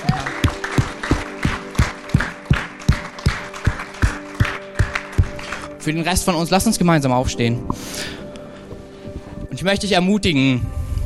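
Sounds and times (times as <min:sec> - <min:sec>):
audience applause: 0:00.0 - 0:05.8
speech: 0:05.8 - 0:08.1, 0:09.6 - 0:10.8.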